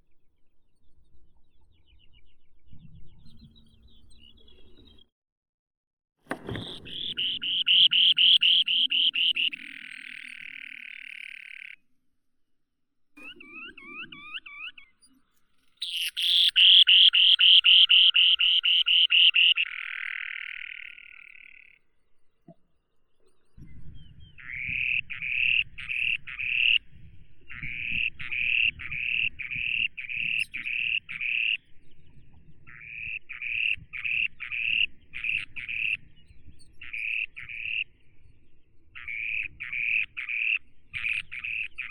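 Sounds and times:
spoon-billed sandpiper Eurynorhynchus pygmaeus calling: 6.3s - 11.8s, 13.2s - 21.8s, 24.4s - 26.9s, 27.5s - 31.8s, 32.7s - 38.0s, 39.0s - 41.8s.

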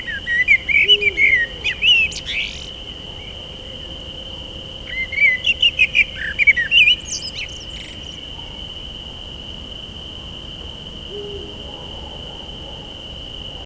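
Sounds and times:
blackbird singing at night: 0.0s - 3.4s, 4.8s - 9.3s.

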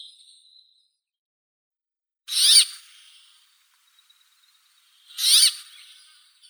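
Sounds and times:
brambling Fringilla montifringilla calling: 2.3s - 3.3s, 5.1s - 6.1s.

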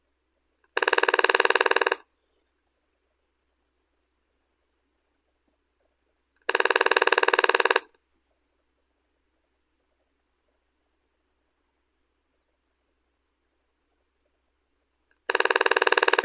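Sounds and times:
lesser spotted woodpecker Dendrocopos minor: 0.6s - 2.0s, 6.4s - 7.9s, 15.2s - 16.2s.

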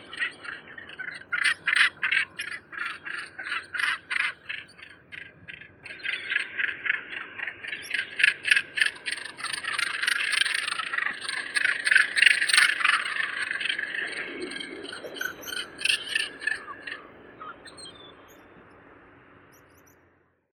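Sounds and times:
Morus bassanus northern gannet: 0.0s - 20.0s.

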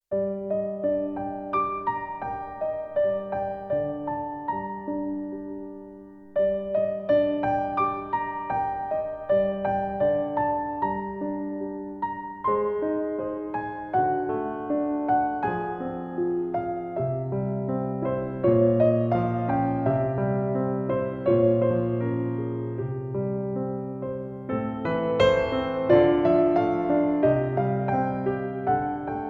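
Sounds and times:
solo piano: 0.0s - 29.2s.

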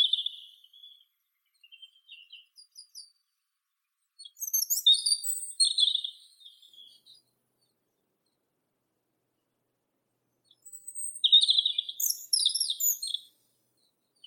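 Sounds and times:
European robin Erithacus rubecula singing: 0.0s - 3.3s, 4.2s - 7.3s, 10.5s - 13.4s.

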